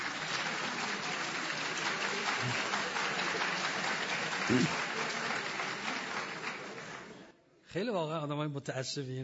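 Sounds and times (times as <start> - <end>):
audience applause at a talk, women and men clapping: 0.0 - 7.3
speech: 4.5 - 4.8, 7.7 - 9.2.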